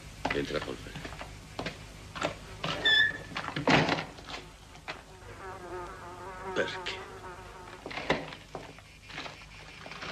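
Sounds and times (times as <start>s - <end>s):
speech: 0.3s - 1.2s, 6.6s - 7.0s
fly buzzing: 2.1s - 3.4s, 4.1s - 10.0s
door shutting: 2.2s - 4.4s
brief squeak: 2.7s - 3.4s.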